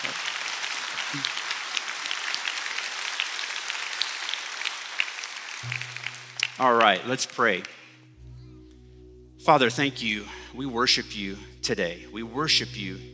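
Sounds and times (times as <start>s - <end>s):
audience round of applause: 0.0s - 7.3s
speech: 1.1s - 1.4s, 6.6s - 7.8s, 9.5s - 13.1s.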